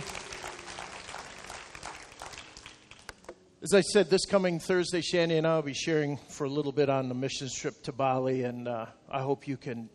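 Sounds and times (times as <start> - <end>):
audience hand clapping: 0.0 - 3.4
speech: 3.6 - 9.9.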